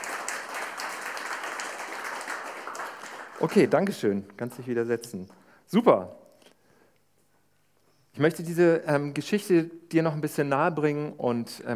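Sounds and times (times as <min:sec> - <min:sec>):
audience applause: 0:00.0 - 0:03.8
speech: 0:03.4 - 0:06.2, 0:08.2 - 0:11.7.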